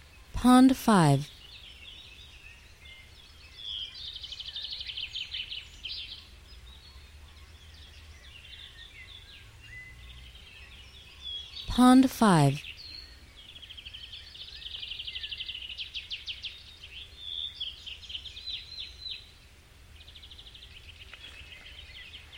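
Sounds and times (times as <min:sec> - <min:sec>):
speech: 0:00.4 - 0:01.3, 0:11.8 - 0:12.7
birds trilling and chirping: 0:01.3 - 0:11.7, 0:12.6 - 0:22.3.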